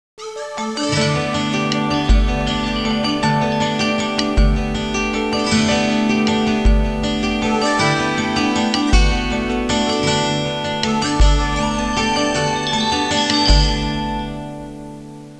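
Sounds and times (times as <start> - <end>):
Hawaiian music ringtone: 0.2 - 15.2.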